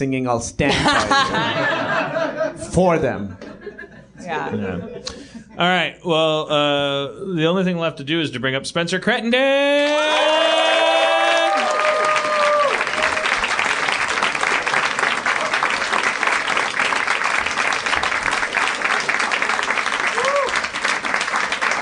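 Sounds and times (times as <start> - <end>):
speech: 0.0 - 3.4, 4.2 - 10.7
laughter: 0.7 - 5.6
audience applause: 9.9 - 21.7.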